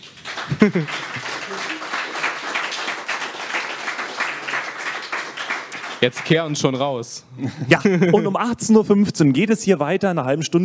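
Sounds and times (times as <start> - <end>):
audience applause: 0.0 - 6.8
laughter: 0.4 - 2.2, 7.4 - 8.6
speech: 0.5 - 1.3, 6.0 - 10.6.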